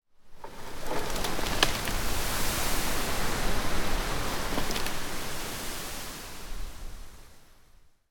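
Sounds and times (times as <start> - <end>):
foliage ambience: 0.3 - 6.1.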